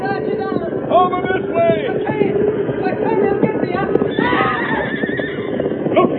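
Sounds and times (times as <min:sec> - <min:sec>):
horse hooves galloping: 0:00.0 - 0:06.1
horse whinnying: 0:04.1 - 0:05.6.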